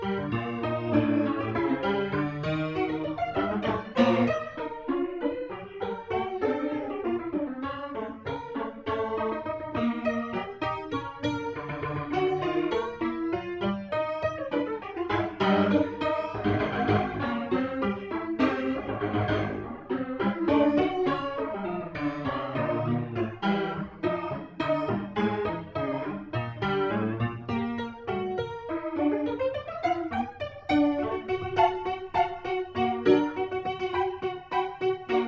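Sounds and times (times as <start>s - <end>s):
slow pop piano: 0.0s - 35.2s.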